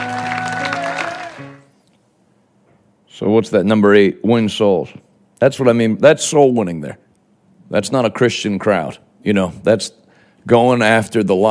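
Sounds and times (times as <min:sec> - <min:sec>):
audience clapping hands: 0:00.0 - 0:01.7
speech: 0:03.2 - 0:07.0, 0:07.7 - 0:11.5.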